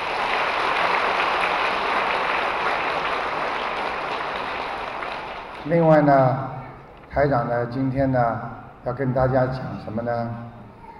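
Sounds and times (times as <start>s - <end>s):
sustained applause from a large crowd: 0.0s - 6.1s
speech: 5.6s - 6.5s, 7.1s - 10.6s.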